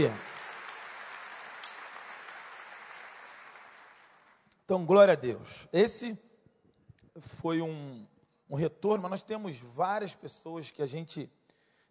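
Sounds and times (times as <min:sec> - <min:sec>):
speech: 0:00.0 - 0:00.2, 0:04.7 - 0:06.2, 0:07.2 - 0:11.4
audience applause: 0:00.0 - 0:04.4.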